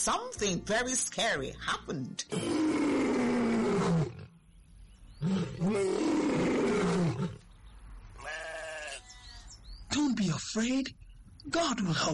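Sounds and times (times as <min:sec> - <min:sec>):
speech: 0:00.0 - 0:02.9, 0:05.6 - 0:06.1, 0:10.6 - 0:12.1
lion roaring: 0:02.3 - 0:04.4, 0:05.2 - 0:07.4.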